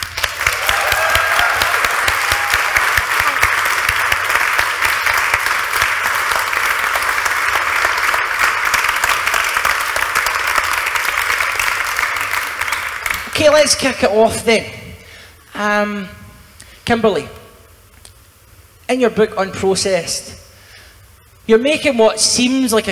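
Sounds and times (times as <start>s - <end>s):
audience applause: 0.0s - 13.4s
speech: 13.6s - 14.8s, 15.6s - 16.2s, 16.9s - 17.4s, 18.9s - 20.4s, 21.5s - 22.8s.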